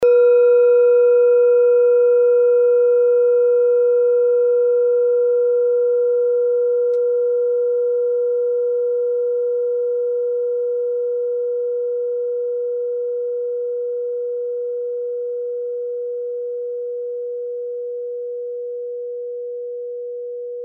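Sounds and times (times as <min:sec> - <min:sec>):
small singing bowl: 0:00.0 - 0:20.6.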